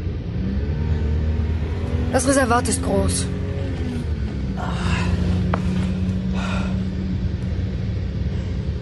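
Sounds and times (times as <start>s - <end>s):
car engine rumbling while driving: 0.0s - 8.8s
speech: 2.1s - 3.4s.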